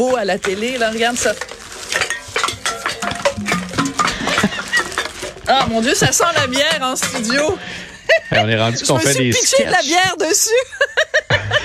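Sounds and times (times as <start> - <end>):
speech: 0.0 - 2.0, 5.5 - 11.6
empty drink cans clattering and clinking: 0.0 - 7.9
laughter: 4.1 - 5.2, 7.5 - 11.6.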